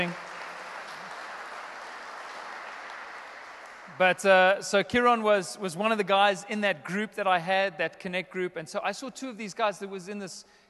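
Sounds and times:
speech: 0:00.0 - 0:00.2, 0:04.0 - 0:10.6
crowd clapping: 0:00.0 - 0:04.4.

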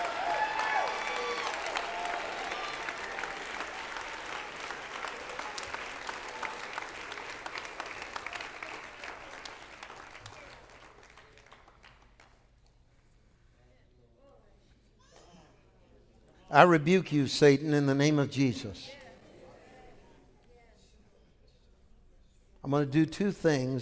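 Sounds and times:
audience clapping hands: 0:00.0 - 0:12.6
speech: 0:16.5 - 0:19.0, 0:22.7 - 0:23.8.

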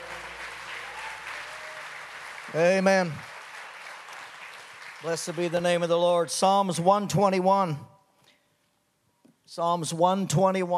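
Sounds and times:
audience clapping hands: 0:00.0 - 0:06.3
speech: 0:02.5 - 0:03.3, 0:05.0 - 0:07.9, 0:09.5 - 0:10.7.

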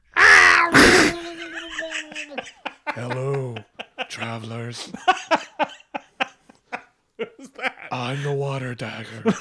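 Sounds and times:
person vocally imitating a scream underwater: 0:00.1 - 0:02.3
laughter: 0:00.2 - 0:09.3
speech: 0:03.0 - 0:03.4, 0:04.1 - 0:05.4, 0:08.0 - 0:09.3.

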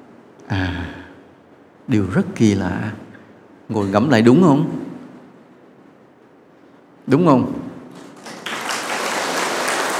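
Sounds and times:
speech: 0:01.9 - 0:03.0, 0:03.7 - 0:04.8, 0:07.1 - 0:07.6
audience applause at a Buddhist talk: 0:08.0 - 0:09.9.

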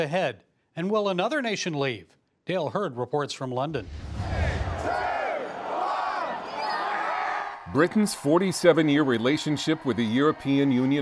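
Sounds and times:
speech: 0:00.0 - 0:04.2, 0:07.7 - 0:11.0
crowd shouting in jubilation: 0:04.2 - 0:11.0.

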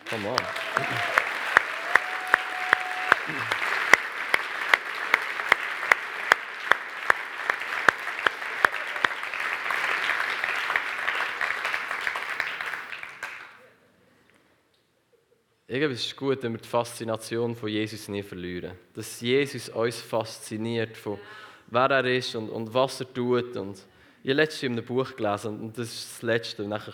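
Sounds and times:
audience applause: 0:00.0 - 0:13.6
speech: 0:00.1 - 0:01.2, 0:03.3 - 0:03.6, 0:15.7 - 0:26.9.

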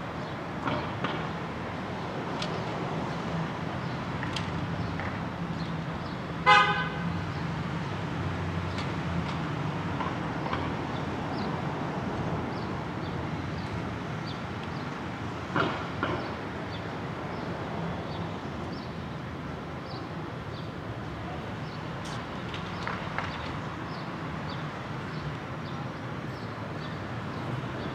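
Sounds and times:
city traffic rumble from a Brooklyn roof: 0:00.0 - 0:27.9.

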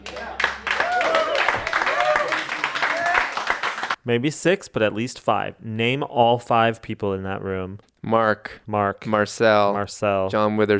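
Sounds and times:
tepid smattering of applause: 0:00.0 - 0:04.0
speech: 0:04.0 - 0:10.7.

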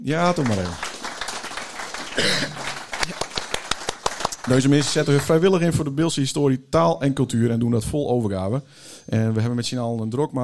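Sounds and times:
speech: 0:00.0 - 0:00.9, 0:04.5 - 0:10.4
small group clapping: 0:00.0 - 0:05.6.

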